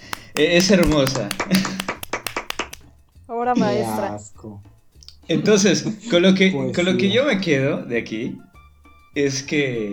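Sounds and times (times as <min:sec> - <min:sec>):
hand clapping: 0:00.0 - 0:02.9
speech: 0:00.4 - 0:01.7, 0:03.4 - 0:04.7, 0:05.3 - 0:08.5, 0:09.2 - 0:09.9
laughter: 0:00.5 - 0:02.0.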